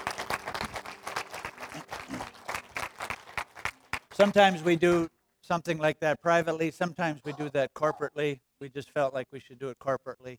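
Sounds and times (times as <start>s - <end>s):
audience clapping: 0.0s - 5.1s
speech: 4.2s - 10.3s.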